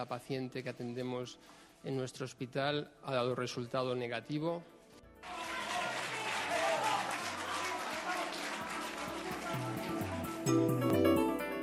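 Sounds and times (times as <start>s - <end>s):
speech: 0.0s - 5.4s, 10.5s - 11.0s
dense applause from a crowd: 5.2s - 10.6s.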